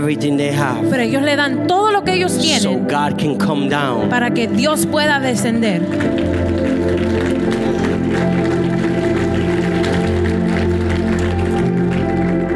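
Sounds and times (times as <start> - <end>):
speech: 0.0 - 7.6
audience applause: 5.1 - 12.5.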